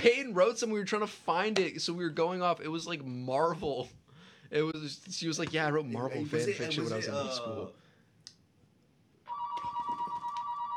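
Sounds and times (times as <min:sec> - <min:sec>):
speech: 0:00.0 - 0:07.8
telephone ringing with a loud electronic ringtone: 0:09.3 - 0:10.7.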